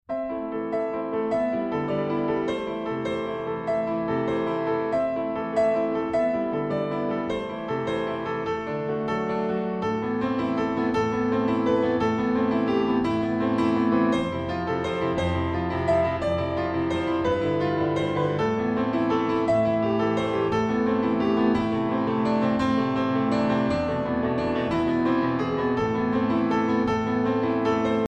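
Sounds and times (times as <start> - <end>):
piano: 0.0 - 28.0.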